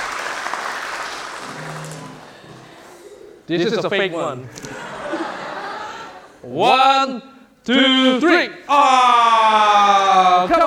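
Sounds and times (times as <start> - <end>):
audience clapping hands: 0.0 - 2.9
speech: 3.5 - 4.8, 6.5 - 10.6
laughter: 4.4 - 6.4.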